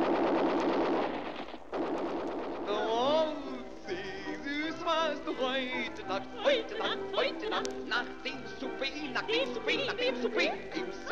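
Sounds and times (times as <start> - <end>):
machine gun fire: 0.0 - 4.4
speech: 5.4 - 11.1.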